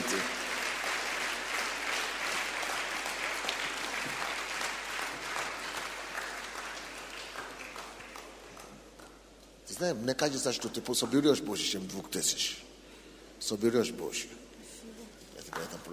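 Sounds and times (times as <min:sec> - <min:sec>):
audience applauding: 0:00.0 - 0:09.2
speech: 0:09.8 - 0:12.7, 0:13.4 - 0:14.6, 0:15.5 - 0:15.9.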